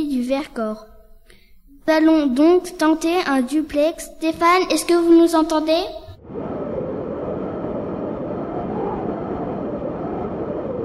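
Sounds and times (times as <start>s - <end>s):
speech: 0.3s - 0.9s, 1.8s - 6.5s
wind blowing across a mountain plateau: 5.9s - 10.8s.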